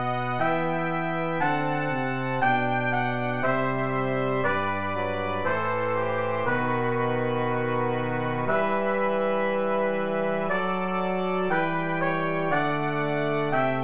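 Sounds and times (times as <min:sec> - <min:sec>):
chorale for trumpets trombone and tuba: 0:00.0 - 0:13.8.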